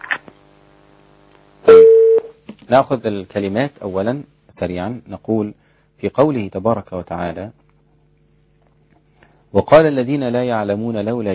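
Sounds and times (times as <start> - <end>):
telephone line tone for an incoming call on a call-in show: 1.7 - 2.3
speech: 2.7 - 7.6, 9.5 - 11.3.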